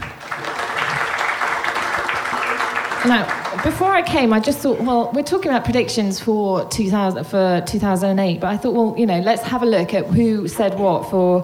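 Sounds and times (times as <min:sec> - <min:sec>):
audience applause at a talk about media predictions: 0:00.0 - 0:04.5
speech: 0:03.0 - 0:11.4.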